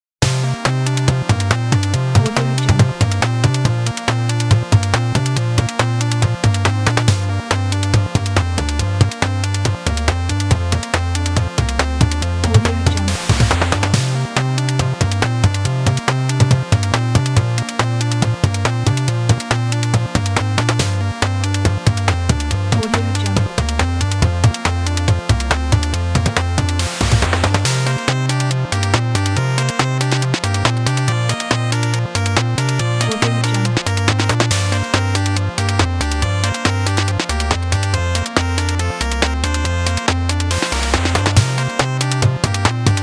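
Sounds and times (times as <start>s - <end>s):
8-bit music: 0.2s - 43.0s.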